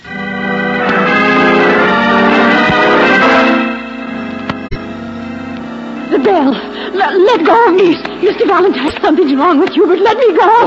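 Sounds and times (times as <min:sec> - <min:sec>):
bell ringing: 0:00.0 - 0:10.6
speech: 0:06.3 - 0:10.6.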